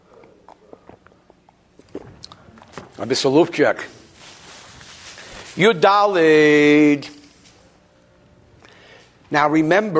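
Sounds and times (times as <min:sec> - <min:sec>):
person sipping water: 0:00.0 - 0:02.8
speech: 0:03.0 - 0:04.0, 0:05.6 - 0:07.1, 0:09.3 - 0:09.9.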